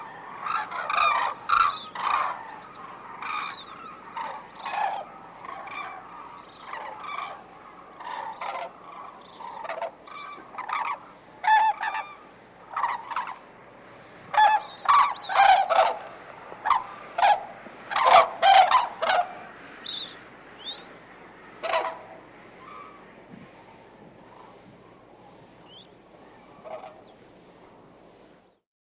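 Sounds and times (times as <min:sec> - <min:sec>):
white-naped crane calling: 0:00.0 - 0:28.6.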